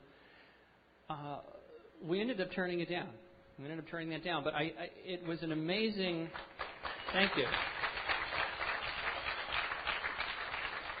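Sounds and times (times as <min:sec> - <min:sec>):
speech: 0:01.1 - 0:07.8
audience clapping: 0:06.3 - 0:10.9.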